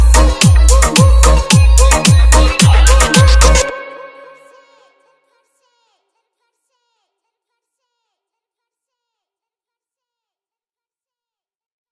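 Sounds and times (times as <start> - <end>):
DJ hard bass vibration remix: 0.0 - 4.5.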